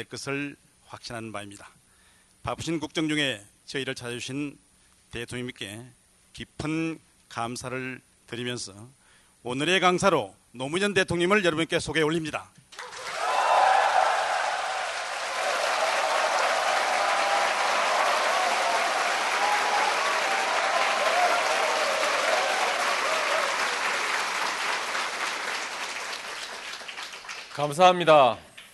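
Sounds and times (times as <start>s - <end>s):
speech: 0.0s - 1.8s, 2.4s - 12.6s, 27.6s - 28.5s
large crowd applauding: 12.8s - 27.9s.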